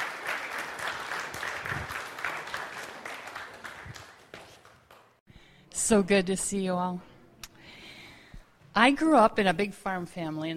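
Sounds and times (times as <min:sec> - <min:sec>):
audience applause welcoming a woman forward to speak: 0:00.0 - 0:05.1
speech: 0:05.9 - 0:07.1, 0:08.8 - 0:10.5.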